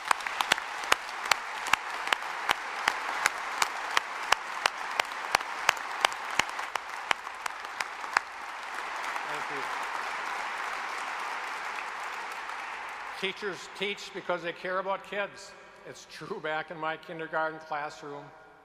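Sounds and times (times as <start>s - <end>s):
audience applause: 0.0s - 13.8s
speech: 13.2s - 18.4s.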